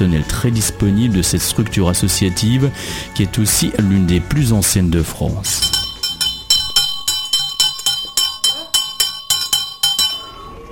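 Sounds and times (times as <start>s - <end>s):
speech: 0.0s - 5.8s
high-pitched rally bell ringing: 5.6s - 10.7s.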